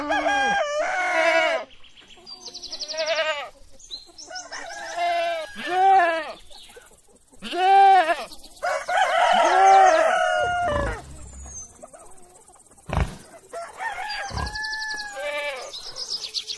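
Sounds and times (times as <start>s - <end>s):
rooster crowing: 0.0s - 1.7s, 4.3s - 6.0s, 8.6s - 11.9s, 13.1s - 15.8s
chickens squawking and clucking: 0.0s - 16.5s.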